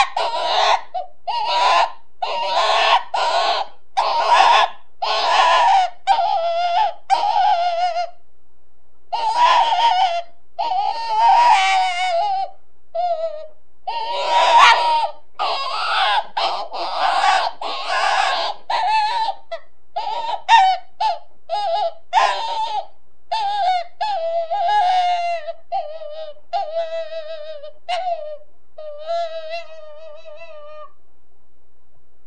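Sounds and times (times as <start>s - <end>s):
rabbit screaming: 0.0s - 8.2s, 9.1s - 31.0s.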